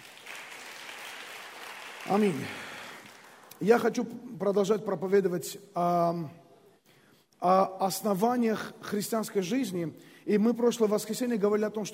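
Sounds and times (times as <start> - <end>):
audience applause: 0.0 - 3.6
speech: 2.1 - 2.6, 3.6 - 6.4, 7.4 - 11.9.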